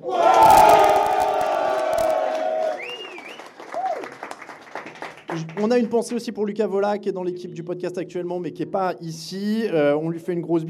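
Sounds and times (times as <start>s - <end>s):
audience applause and cheering: 0.0s - 5.6s
speech: 5.6s - 10.6s.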